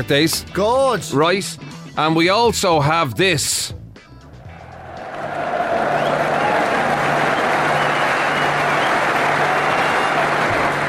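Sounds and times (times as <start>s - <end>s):
speech: 0.0s - 3.8s
general crowd sounds at football stadium: 4.5s - 10.8s.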